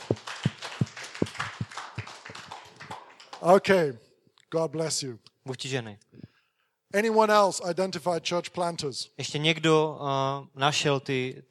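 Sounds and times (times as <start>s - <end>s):
sharp steady claps: 0.0s - 3.8s
speech: 3.4s - 6.1s, 6.9s - 11.4s.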